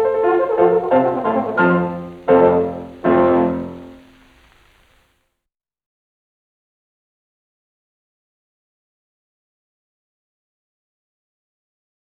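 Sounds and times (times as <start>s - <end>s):
horn sonata: 0.0s - 5.0s.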